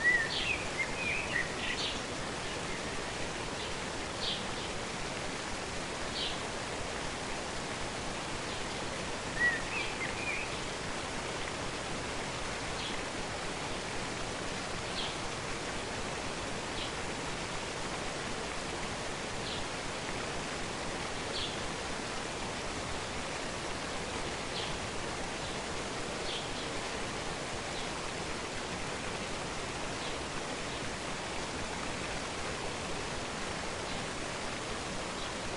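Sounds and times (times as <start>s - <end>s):
faint bird chirps: 0.0s - 2.0s, 9.4s - 10.6s
waterfall roaring: 0.0s - 35.5s.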